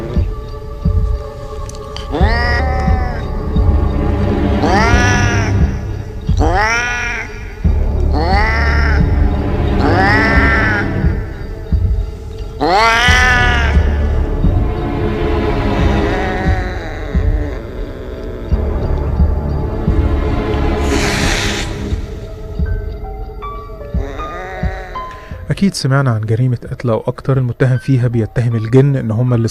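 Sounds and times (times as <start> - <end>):
steady low throbbing hum: 0.0 - 6.6, 7.6 - 17.8, 18.5 - 24.2
cats meowing and caterwauling: 1.9 - 3.7, 4.6 - 11.3, 12.5 - 14.6, 15.7 - 18.6, 24.0 - 25.2
speech: 25.6 - 29.4.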